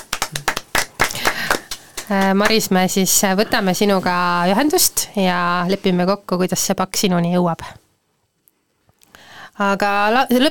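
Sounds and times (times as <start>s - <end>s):
small group clapping: 0.0s - 3.0s
speech: 2.1s - 7.8s, 9.6s - 10.4s.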